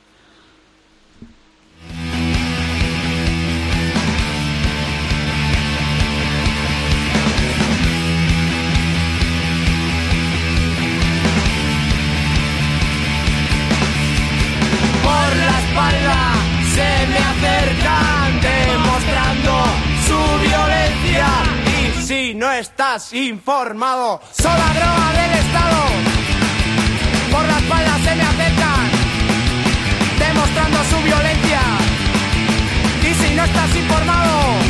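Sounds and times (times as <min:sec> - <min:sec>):
loud rock song with distorted guitars and drums: 0:01.8 - 0:22.4, 0:24.4 - 0:34.6
vocal line over rock band: 0:15.0 - 0:26.2, 0:27.2 - 0:29.0, 0:30.0 - 0:32.0, 0:32.9 - 0:34.6
speech: 0:22.6 - 0:26.3.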